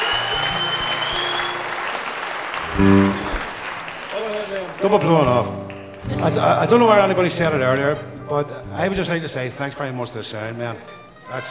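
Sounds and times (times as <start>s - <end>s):
audience applause for the musicians after a live music performance: 0.0s - 7.0s
speech: 2.8s - 3.2s, 4.8s - 11.4s.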